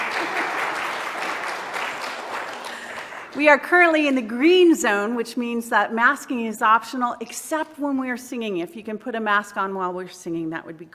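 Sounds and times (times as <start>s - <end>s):
audience clapping: 0.0s - 3.5s
speech: 3.4s - 10.9s.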